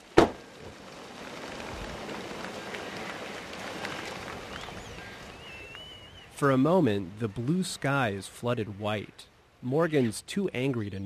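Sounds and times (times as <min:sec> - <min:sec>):
flock of white pelicans taking flight: 0:00.4 - 0:06.4
speech: 0:06.4 - 0:11.0.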